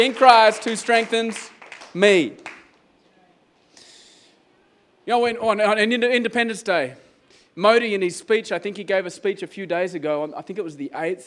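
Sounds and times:
speech: 0.0s - 2.5s, 5.1s - 7.0s, 7.6s - 11.2s
audience clapping: 0.0s - 2.8s.

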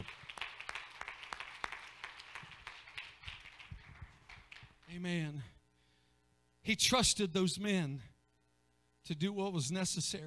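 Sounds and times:
audience clapping hands: 0.0s - 5.0s
speech: 4.9s - 5.6s, 6.6s - 8.1s, 9.0s - 10.2s.

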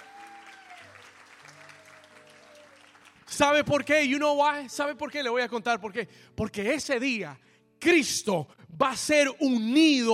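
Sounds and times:
audience applause: 0.0s - 3.6s
speech: 3.4s - 10.1s.

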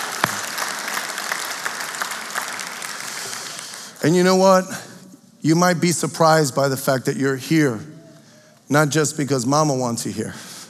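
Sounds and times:
congregation clapping to welcome a guest at a church service: 0.0s - 4.3s
speech: 4.0s - 4.8s, 5.4s - 7.9s, 8.7s - 10.5s.

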